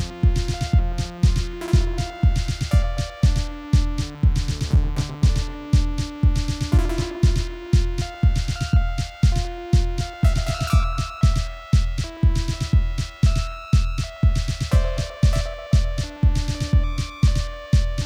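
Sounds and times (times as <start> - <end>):
Korg Volca synthesizer noise: 0.2 - 18.0.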